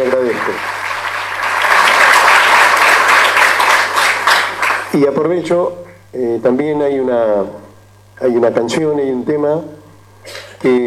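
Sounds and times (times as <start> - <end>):
speech: 0.0 - 0.8, 4.9 - 10.8
crowd applause: 0.0 - 5.0.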